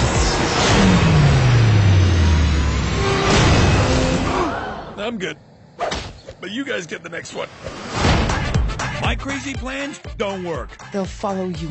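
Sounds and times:
car engine revving as the car drives off: 0.0 - 4.4
speech: 5.1 - 8.0, 9.0 - 11.6.

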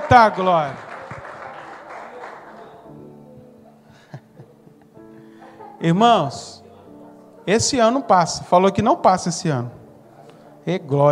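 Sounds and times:
applause: 0.0 - 3.1
speech: 0.1 - 0.9, 5.8 - 6.6, 7.4 - 9.8, 10.6 - 11.1
laughter: 1.2 - 6.2.

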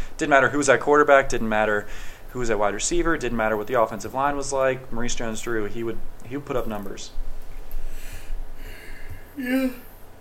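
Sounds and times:
speech: 0.2 - 7.2, 9.4 - 9.9
person yawning: 8.0 - 9.9.

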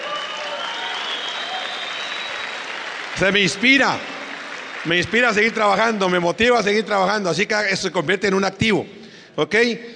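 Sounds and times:
audience applause: 0.0 - 6.2
speech: 3.2 - 4.1, 4.8 - 9.9.

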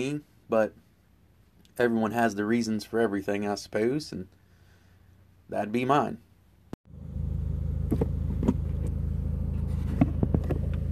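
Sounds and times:
speech: 0.0 - 0.8, 1.8 - 4.4, 5.5 - 6.2
car driving engine noise: 6.9 - 10.9.

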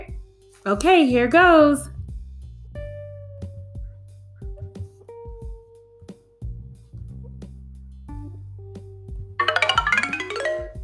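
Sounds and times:
speech: 0.6 - 1.9
bouncy synth page-turn signal for a read-aloud story: 9.4 - 10.8
bright glittering chime-like shimmer: 9.4 - 10.8.

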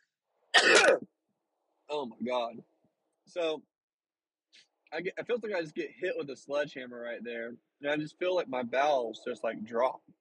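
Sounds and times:
sneeze: 0.6 - 1.1
speech: 0.6 - 1.1, 1.9 - 2.7, 3.3 - 3.7, 4.6 - 10.1.

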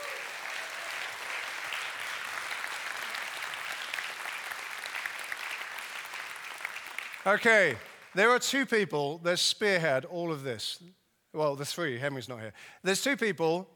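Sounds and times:
audience applause: 0.0 - 8.2
speech: 7.2 - 13.7.

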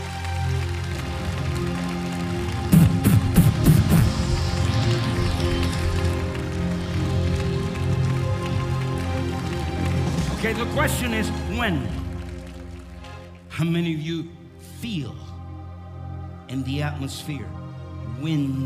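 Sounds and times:
audience applause: 0.0 - 13.5
speech: 10.6 - 12.0, 13.6 - 15.3, 16.5 - 17.6, 18.2 - 18.6.

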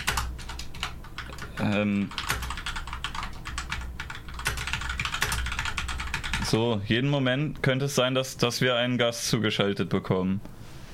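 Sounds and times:
typing a message on a computer keyboard: 0.0 - 6.6
speech: 1.6 - 2.3, 6.5 - 10.6.

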